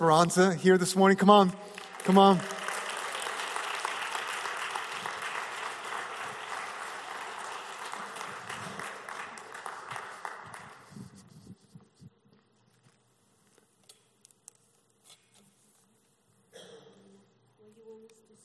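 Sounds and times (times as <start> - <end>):
speech: 0.0 - 2.6
audience applause: 1.7 - 11.0.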